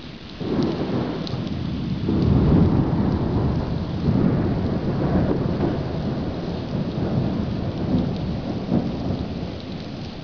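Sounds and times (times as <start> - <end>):
distant lightning strike: 0.4 - 10.2.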